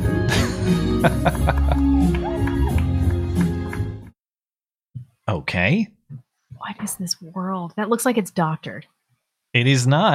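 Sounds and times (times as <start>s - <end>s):
laughter: 0.3s - 2.8s
speech: 0.7s - 2.4s, 5.6s - 6.0s, 6.6s - 10.1s
crowd cheering at campaign event: 1.1s - 4.0s
scattered whoops: 1.3s - 3.1s
sharp claps: 1.3s - 4.1s.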